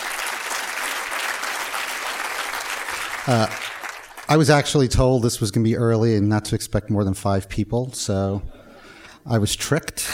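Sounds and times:
crowd applause: 0.0 - 4.5
speech: 3.2 - 3.7, 4.3 - 8.6, 9.2 - 10.1.

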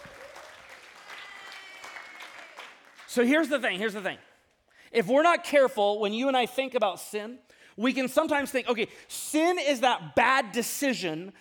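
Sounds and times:
audience applause: 0.0 - 3.1
speech: 3.1 - 4.3, 4.9 - 11.4.

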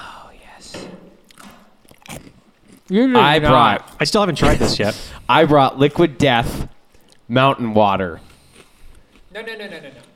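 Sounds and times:
person biting into a crunchy snack: 1.3 - 2.9
speech: 2.9 - 6.7, 7.3 - 8.3, 9.4 - 10.1.

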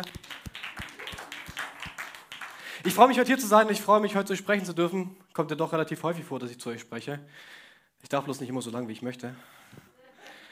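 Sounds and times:
crowd applause: 0.0 - 3.2
speech: 2.8 - 9.8.

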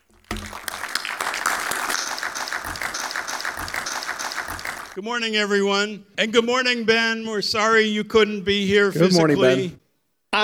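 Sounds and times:
audience applause at the Aviation Festival Americas welcoming speakers on stage: 0.0 - 5.0
speech: 5.0 - 10.4.

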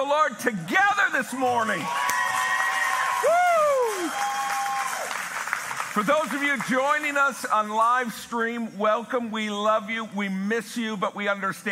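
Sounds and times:
speech: 0.0 - 2.1, 6.0 - 11.7
audience applause and cheering: 1.4 - 7.7.

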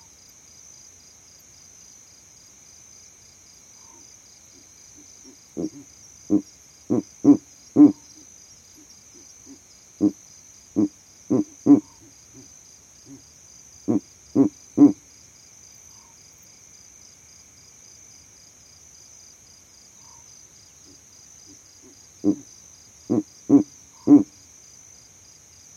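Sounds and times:
insect trill: 0.0 - 25.7
Verreaux's eagle owl hooting in the savanna: 5.0 - 8.2, 9.4 - 10.2, 10.8 - 12.5, 13.9 - 15.0, 20.9 - 22.5, 23.1 - 24.4.

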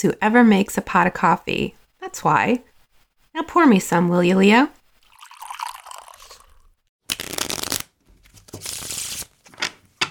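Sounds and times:
speech: 0.0 - 2.7, 3.4 - 4.8
playing cards being shuffled: 7.1 - 9.6.

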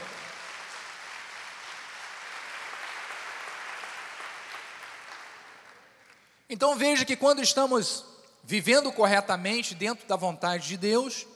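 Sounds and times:
audience applause: 0.0 - 6.2
speech: 6.5 - 11.3.

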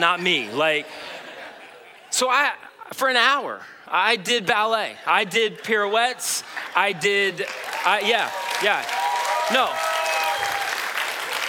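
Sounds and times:
speech: 0.0 - 1.2, 2.1 - 10.6
laughter: 0.4 - 2.9
audience clapping: 5.4 - 11.4.

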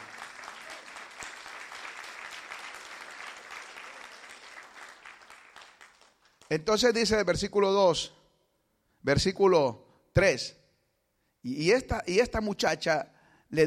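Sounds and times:
audience applauding: 0.0 - 6.5
speech: 6.5 - 8.2, 9.0 - 10.6, 11.4 - 13.6.

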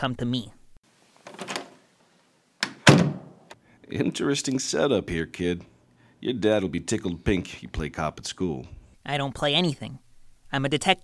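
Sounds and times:
speech: 0.0 - 0.6, 3.9 - 11.0
door opening: 1.2 - 1.8, 2.6 - 3.6.

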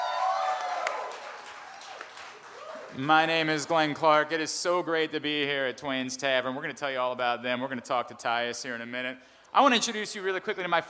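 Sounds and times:
whoops from the audience: 0.0 - 3.0
live audience cheering and applauding: 0.0 - 3.1
speech: 3.0 - 10.8.

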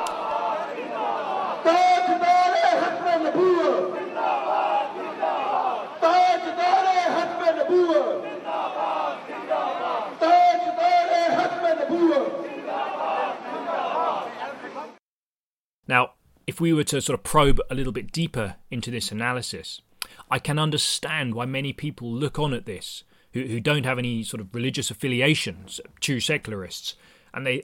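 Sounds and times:
demonstrators shouting outside the French embassy: 0.0 - 15.0
speech: 15.9 - 27.6.

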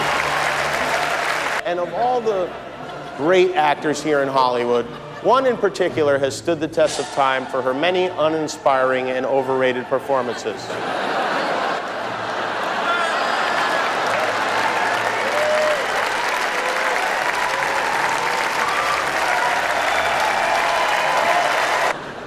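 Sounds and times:
audience applause: 0.0 - 1.6, 11.8 - 22.0
speech: 1.7 - 11.2
laughter: 4.6 - 5.7, 10.1 - 15.7.

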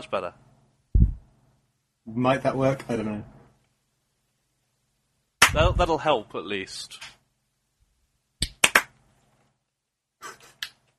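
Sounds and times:
speech: 0.0 - 0.4, 2.1 - 3.4, 5.5 - 7.2
hand clapping: 5.4 - 5.7, 8.4 - 9.0.

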